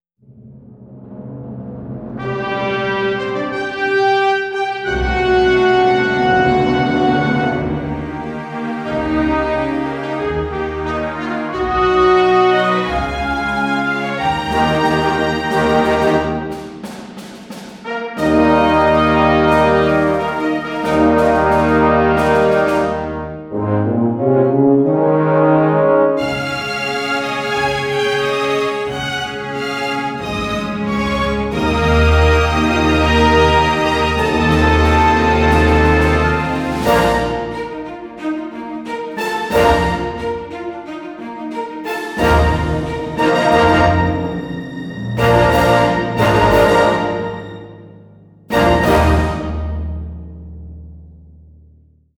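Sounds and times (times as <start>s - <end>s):
victory celebration fanfare: 2.2s - 16.9s, 17.8s - 38.2s, 39.2s - 40.8s, 41.8s - 50.1s.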